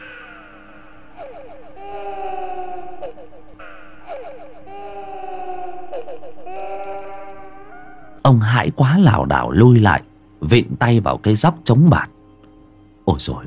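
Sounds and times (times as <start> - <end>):
child wailing and sobbing: 0.0 - 8.2
speech: 8.3 - 12.1, 13.1 - 13.4.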